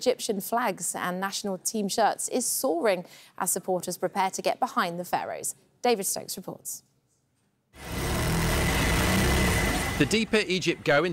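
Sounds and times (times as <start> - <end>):
speech: 0.0 - 6.9, 10.0 - 11.1
sewing machines running in a Cairo workshop making Egyptian national flags: 7.8 - 10.3.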